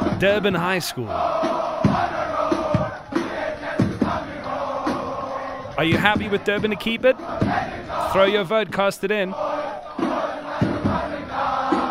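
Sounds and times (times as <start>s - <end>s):
high school students chanting a war cry: 0.0s - 11.8s
sharp rhythmic shouts and stamping: 0.0s - 11.8s
speech: 0.2s - 2.1s, 5.8s - 9.4s.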